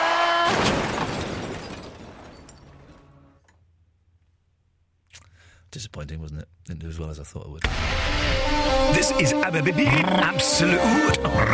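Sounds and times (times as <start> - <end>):
car crash sound effect: 0.4 - 3.5, 7.6 - 9.2
speech: 5.7 - 11.5.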